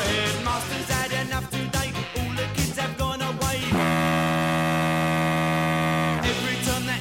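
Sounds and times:
music: 0.0 - 7.0
foghorn blaring: 3.7 - 6.3.

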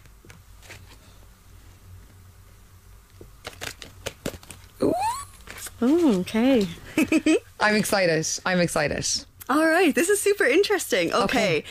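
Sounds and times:
low steady hum: 0.0 - 11.7
tarot cards being shuffled: 3.4 - 6.7
speech: 5.8 - 11.7.

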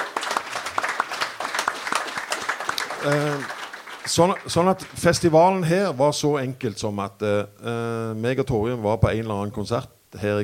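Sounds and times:
small audience scattered applause: 0.0 - 5.4
speech: 3.0 - 10.4.

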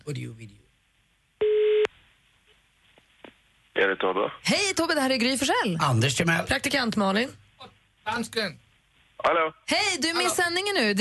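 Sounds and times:
speech: 0.0 - 0.6, 3.8 - 8.6, 9.2 - 10.9
telephone ringing tone: 1.4 - 1.9.

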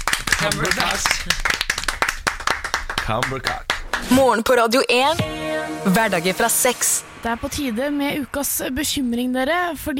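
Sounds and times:
small round of applause: 0.0 - 4.5
speech: 0.4 - 1.6, 3.1 - 9.9.

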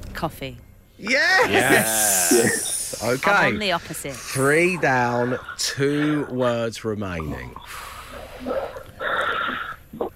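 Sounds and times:
speech: 0.2 - 7.8
heavy raspy breathing: 1.6 - 6.4, 7.6 - 9.9.

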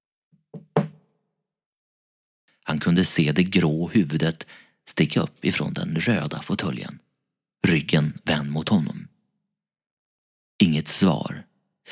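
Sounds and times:
light knocking on a wooden door frame: 0.6 - 1.0
speech: 2.7 - 9.1, 10.6 - 11.9.

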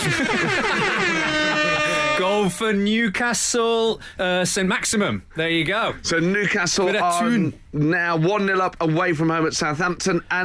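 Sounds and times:
laughter: 0.0 - 2.2
double air horn blasts: 0.8 - 2.6
speech: 2.4 - 10.4.

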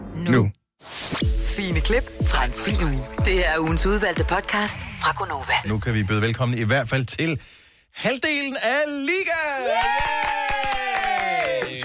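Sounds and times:
speech: 0.1 - 10.8
sustained vocal cheer: 9.6 - 11.8
audience applause: 9.8 - 11.8.

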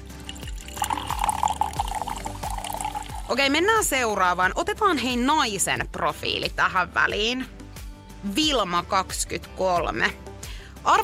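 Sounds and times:
drink pouring into a glass: 0.0 - 3.4
speech: 3.3 - 7.6, 8.2 - 11.0.

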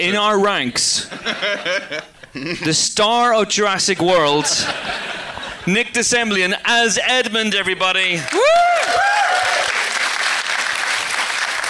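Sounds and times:
speech: 0.0 - 9.1
laughter: 1.0 - 2.8, 4.2 - 5.7
whooping cheers: 8.2 - 10.0
audience applauding: 8.2 - 11.6.

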